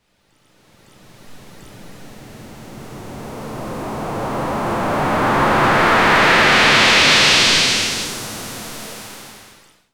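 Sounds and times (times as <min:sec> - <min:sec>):
ocean waves: 0:01.8 - 0:08.8.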